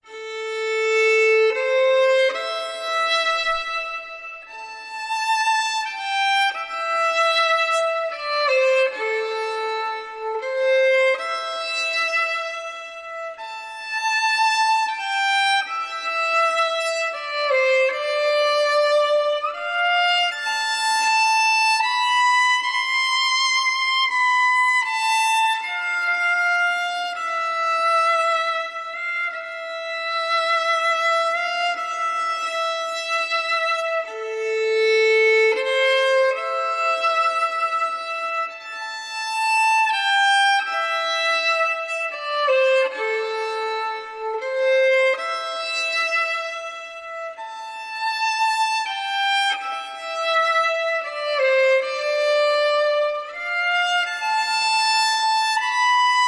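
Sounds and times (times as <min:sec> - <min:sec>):
violin: 0:00.0 - 0:56.2.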